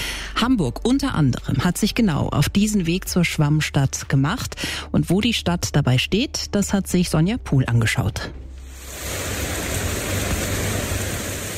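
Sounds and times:
speech: 0.4s - 8.4s
heavy rain during a thunderstorm: 8.7s - 11.5s.

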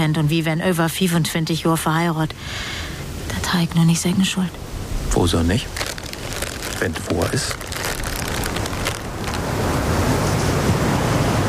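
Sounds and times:
speech: 0.0s - 5.8s, 6.8s - 7.6s
storm wind: 4.5s - 11.4s.

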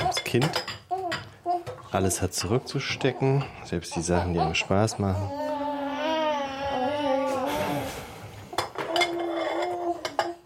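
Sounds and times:
dishes and cutlery clattering in a kitchen: 0.0s - 5.0s, 8.5s - 10.4s
speech: 0.3s - 0.7s, 1.9s - 5.4s
baby crying: 3.8s - 8.0s, 8.8s - 10.4s.

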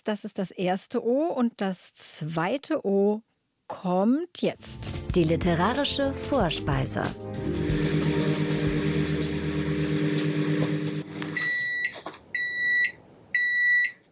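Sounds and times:
speech: 0.0s - 7.7s
microwave oven beeping: 7.5s - 14.0s.

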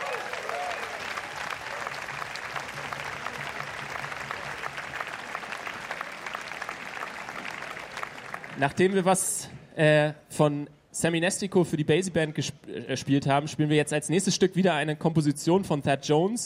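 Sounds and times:
audience applause: 0.0s - 9.0s
speech: 8.6s - 16.4s.

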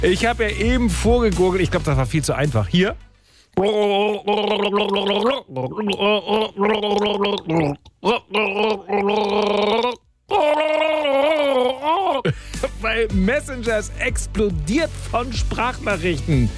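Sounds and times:
speech: 0.0s - 16.5s
person gargling a melody: 3.6s - 12.3s.

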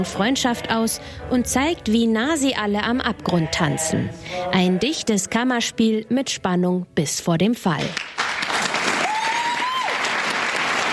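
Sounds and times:
speech: 0.0s - 8.2s
applause at a theatre premiere: 8.0s - 10.9s.

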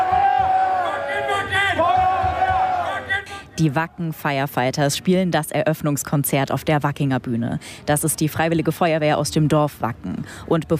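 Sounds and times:
festival crowd applause: 0.0s - 3.3s
large outdoor festival crowd cheering and chanting: 0.0s - 4.2s
speech: 3.6s - 10.7s.

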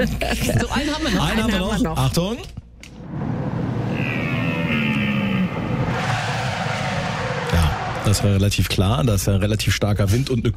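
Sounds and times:
speech: 0.0s - 2.6s, 8.1s - 10.5s
road rumble: 2.8s - 9.4s
car tires squealing in emergency braking: 3.2s - 9.0s.

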